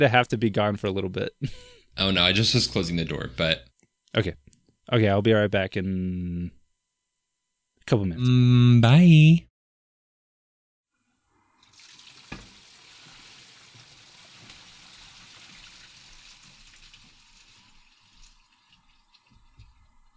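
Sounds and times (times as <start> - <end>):
speech: 0.0 - 6.6, 7.9 - 9.5
urine stream hitting toilet water: 11.6 - 19.9.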